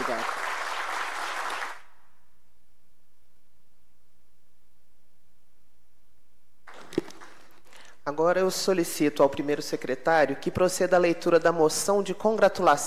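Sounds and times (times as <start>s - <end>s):
audience applause: 0.0s - 1.9s
speech: 0.1s - 0.4s, 8.1s - 12.8s.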